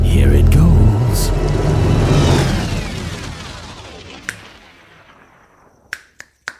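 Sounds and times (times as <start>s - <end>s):
rumbling whoosh: 0.0s - 5.8s
finger snapping to start a fire: 5.9s - 6.5s.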